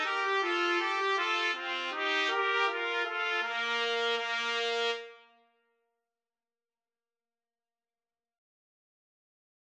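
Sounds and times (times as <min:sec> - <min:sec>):
trumpet duet: 0:00.0 - 0:05.5.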